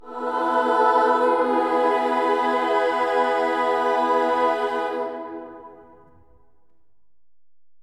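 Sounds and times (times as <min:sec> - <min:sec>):
amen vocals: 0:00.0 - 0:06.0.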